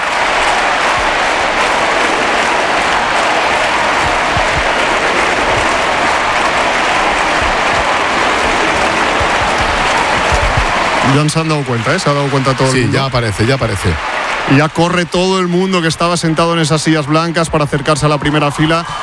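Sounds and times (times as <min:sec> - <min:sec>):
stadium crowd applauding live: 0:00.0 - 0:19.0
speech: 0:11.1 - 0:19.0.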